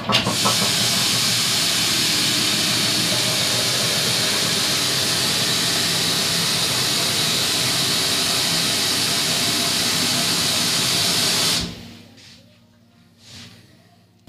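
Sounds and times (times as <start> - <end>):
pot of water heating on stove, hissing: 0.2 - 11.8.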